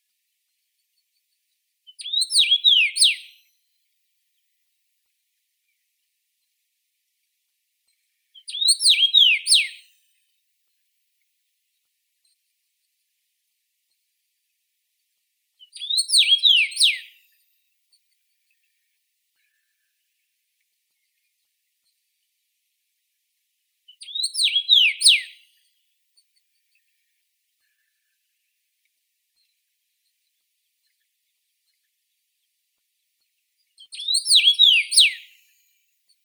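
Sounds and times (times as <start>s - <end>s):
common rosefinch Carpodacus erythrinus: 1.9s - 3.5s, 7.9s - 10.0s, 15.6s - 17.4s, 23.9s - 25.6s, 33.6s - 36.2s.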